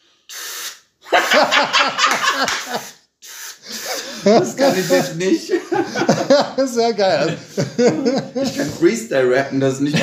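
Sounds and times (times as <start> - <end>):
mouth imitation of a spray can hiss: 0.3 - 1.4, 2.6 - 4.0, 4.6 - 5.2
person laughing: 1.1 - 2.9, 3.6 - 8.9
speech: 1.3 - 3.0, 3.6 - 10.0.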